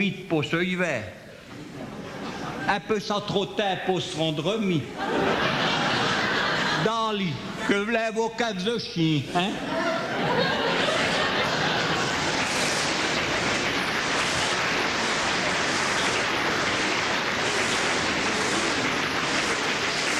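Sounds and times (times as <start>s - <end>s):
speech: 0.0s - 1.2s, 2.7s - 5.6s, 6.8s - 10.7s
laughter: 1.6s - 2.8s, 4.8s - 7.9s, 9.3s - 13.2s
applause: 10.8s - 20.1s.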